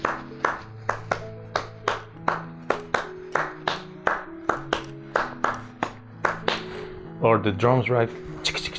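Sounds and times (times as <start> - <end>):
hands clapping: 0.0 - 6.8
speech: 7.2 - 8.6.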